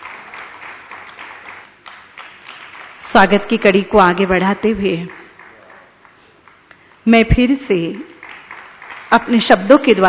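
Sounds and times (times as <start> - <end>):
audience applause: 0.0 - 3.1, 8.2 - 9.4
speech: 3.1 - 5.2, 7.1 - 8.1, 9.1 - 10.0.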